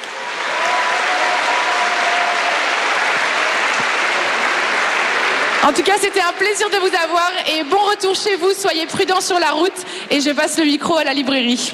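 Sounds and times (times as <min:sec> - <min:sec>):
audience applause: 0:00.0 - 0:08.4
speech: 0:05.6 - 0:11.7.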